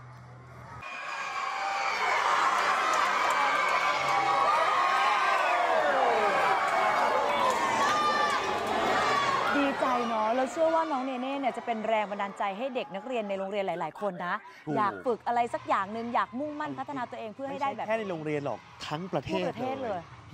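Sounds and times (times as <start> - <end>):
students cheering and shouting: 0.8 - 13.5
speech: 10.8 - 20.3.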